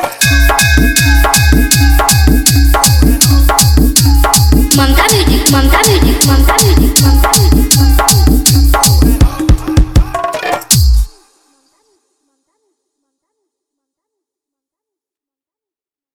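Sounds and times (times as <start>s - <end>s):
dj remix song: 0.0s - 11.4s.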